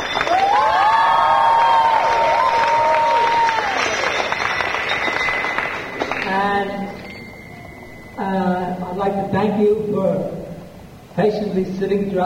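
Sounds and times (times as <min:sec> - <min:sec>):
applause: 0:00.0 - 0:07.1
speech: 0:09.3 - 0:10.4, 0:11.2 - 0:12.2.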